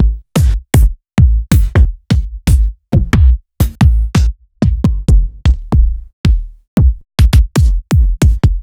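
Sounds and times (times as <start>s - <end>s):
bass drum hits: 0.0s - 8.5s.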